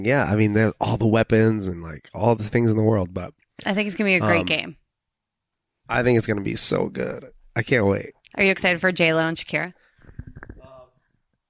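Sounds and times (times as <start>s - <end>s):
speech: 0.0s - 4.8s, 5.9s - 10.4s
person sneezing: 4.2s - 4.5s.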